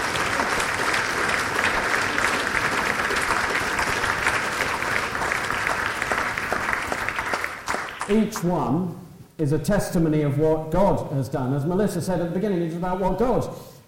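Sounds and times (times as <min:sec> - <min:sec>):
round of applause: 0:00.0 - 0:08.2
speech: 0:08.1 - 0:13.8.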